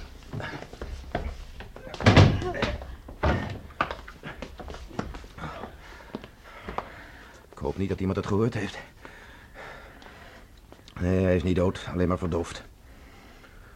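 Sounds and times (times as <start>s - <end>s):
soft knocks and bumps: 0.0s - 6.9s
door slamming shut: 2.0s - 3.6s
speech: 7.8s - 9.0s, 11.0s - 12.7s.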